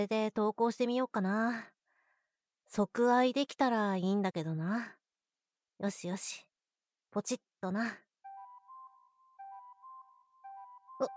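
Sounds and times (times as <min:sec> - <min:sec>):
speech: 0:00.0 - 0:01.7, 0:02.7 - 0:05.0, 0:05.8 - 0:06.5, 0:07.1 - 0:08.0
incoming message notification chimes on a phone: 0:08.3 - 0:11.1.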